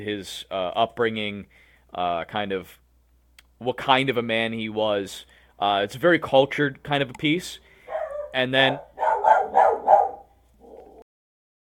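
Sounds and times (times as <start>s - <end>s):
speech: 0.0s - 2.8s, 3.6s - 7.7s, 8.3s - 8.9s
neighbor's dog barking: 7.9s - 11.0s.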